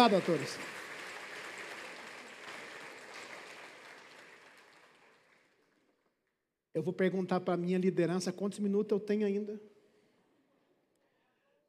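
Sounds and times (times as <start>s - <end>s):
speech: 0.0s - 0.8s, 6.8s - 9.7s
audience applause for actors: 0.0s - 5.9s.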